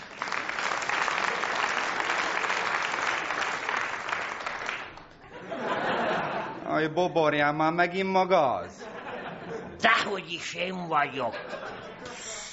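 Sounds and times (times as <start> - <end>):
audience applause: 0.0 - 5.2
laughter: 5.2 - 6.7, 8.6 - 12.4
speech: 6.8 - 8.8, 9.8 - 11.7.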